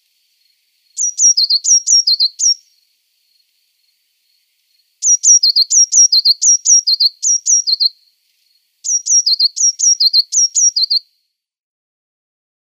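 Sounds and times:
Eurasian blue tit singing: 1.0s - 2.7s, 5.0s - 8.0s, 8.8s - 11.0s.

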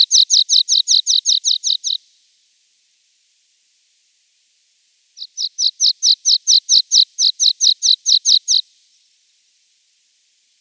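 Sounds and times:
Water Pipit singing: 0.0s - 2.0s, 5.2s - 8.6s.

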